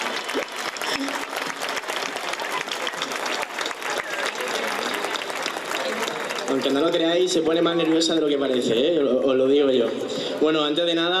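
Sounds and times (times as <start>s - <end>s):
audience applause: 0.0s - 8.9s
speech: 6.6s - 11.1s.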